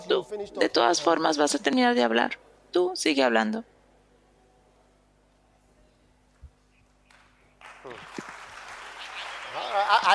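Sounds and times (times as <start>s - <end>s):
speech: 0.1s - 3.7s, 10.0s - 10.1s
applause: 7.1s - 10.1s.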